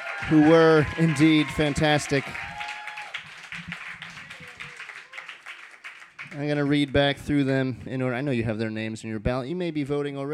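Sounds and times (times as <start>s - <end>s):
faint voices and cheers: 0.0s - 5.5s
audience applause for readers: 0.0s - 7.6s
speech: 0.2s - 2.5s, 6.4s - 10.3s.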